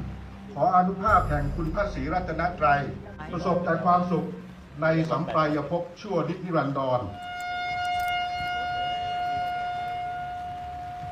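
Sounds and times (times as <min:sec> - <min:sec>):
speech: 0:00.5 - 0:07.3
honour guard military bugle: 0:07.2 - 0:10.8.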